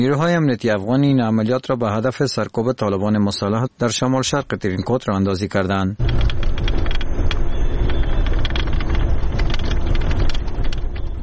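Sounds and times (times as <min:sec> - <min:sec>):
speech: 0:00.0 - 0:06.3
Humvee armoured vehicles driving carrying Afghan forces in Tarinkot: 0:06.0 - 0:11.2.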